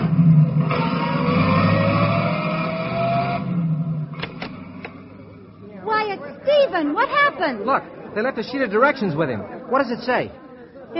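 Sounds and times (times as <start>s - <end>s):
car engine driving off: 0.0s - 5.6s
sharp clicks: 4.1s - 5.0s
speech: 6.8s - 10.9s.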